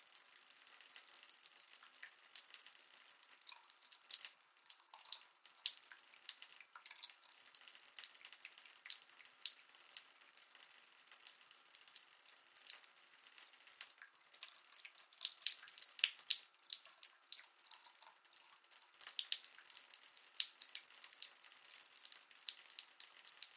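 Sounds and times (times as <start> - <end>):
household bathtub filling up with water: 0.0 - 23.5.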